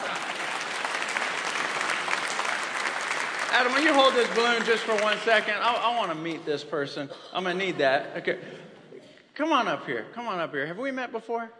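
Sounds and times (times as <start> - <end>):
audience applause: 0.0 - 6.4
speech: 3.5 - 8.7, 9.4 - 11.5.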